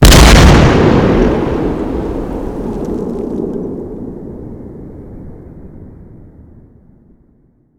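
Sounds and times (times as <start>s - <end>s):
artillery fire: 0.0s - 5.7s.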